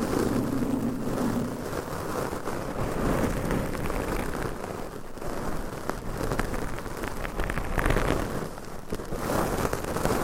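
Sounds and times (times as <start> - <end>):
low rumbling hum: 0.0 - 10.1
scratching, tapping and brushing on a microphone cover: 0.0 - 10.2.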